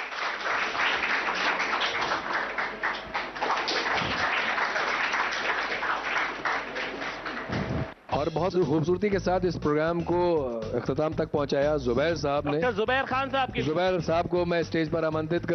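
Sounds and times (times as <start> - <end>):
audience applause: 0.0 - 8.0
speech: 8.2 - 15.5.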